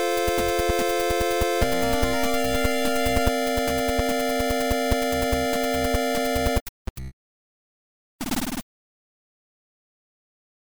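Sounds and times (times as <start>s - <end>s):
eight-bit music: 0.0s - 6.6s.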